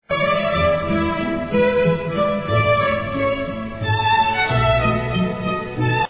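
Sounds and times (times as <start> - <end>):
minuet: 0.1 - 6.0.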